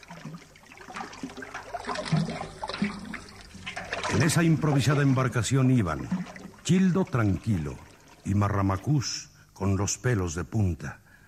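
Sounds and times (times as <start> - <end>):
rushing floodwater of a river: 0.8 - 8.5
speech: 4.2 - 11.0.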